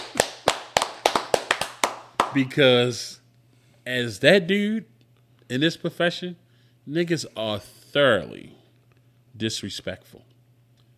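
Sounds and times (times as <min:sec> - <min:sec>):
sharp hand claps: 0:00.0 - 0:02.5
speech: 0:02.3 - 0:03.2, 0:03.9 - 0:04.9, 0:05.5 - 0:08.6, 0:09.4 - 0:10.3.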